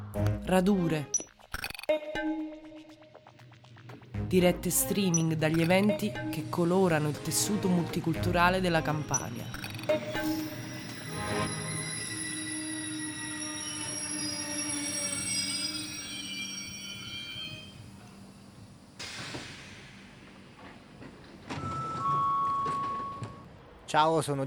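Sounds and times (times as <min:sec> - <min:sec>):
speech: 0:00.1 - 0:01.3, 0:01.9 - 0:02.5, 0:04.3 - 0:10.6, 0:23.9 - 0:24.4
train wheels squealing at Gianturco station in Naples: 0:09.0 - 0:18.9, 0:21.5 - 0:23.6.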